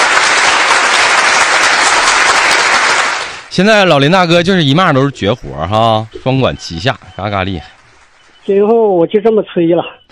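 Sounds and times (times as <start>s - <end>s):
audience applause: 0.0s - 8.4s
speech: 3.6s - 7.8s, 8.5s - 10.0s.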